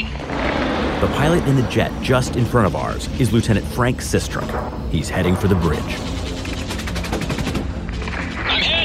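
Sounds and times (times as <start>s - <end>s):
anti-aircraft gunfire: 0.1s - 1.6s, 5.5s - 8.7s
speech: 1.0s - 6.1s.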